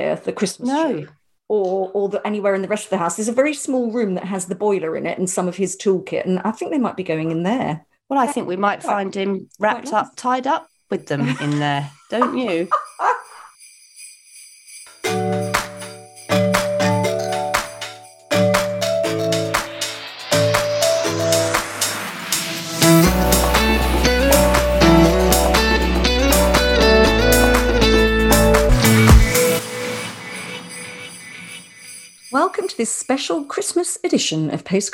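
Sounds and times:
speech: 0:00.0 - 0:13.2, 0:32.7 - 0:34.9
festive musical jingle with sleigh bells, chords and bass line: 0:12.2 - 0:33.6.

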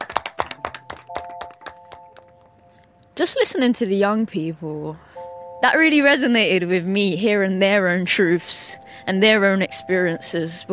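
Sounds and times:
scattered hand claps from a small group: 0:00.0 - 0:02.5
speech: 0:03.2 - 0:10.7.

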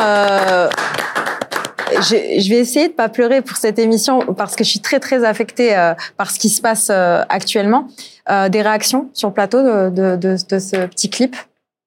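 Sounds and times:
hand clapping applause: 0:00.0 - 0:02.2
speech: 0:02.0 - 0:11.5.

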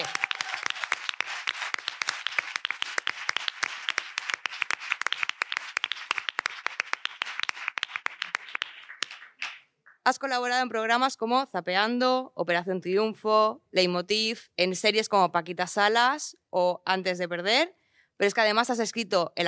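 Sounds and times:
audience applause: 0:00.0 - 0:09.6
speech: 0:10.1 - 0:19.4.

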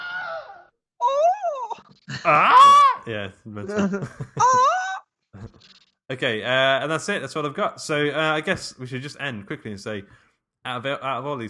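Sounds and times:
Wilhelm scream sound effect, strained wavering male cries: 0:02.2 - 0:03.1
speech: 0:02.2 - 0:04.8, 0:05.4 - 0:11.4
laughter: 0:03.6 - 0:05.6.

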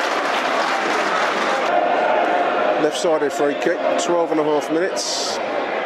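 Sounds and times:
football crowd applauding politely: 0:00.0 - 0:01.8
speech: 0:02.8 - 0:05.7.

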